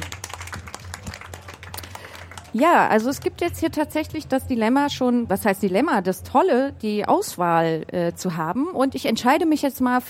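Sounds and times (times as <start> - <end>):
applause: 0.0 - 3.4
speech: 2.5 - 10.0.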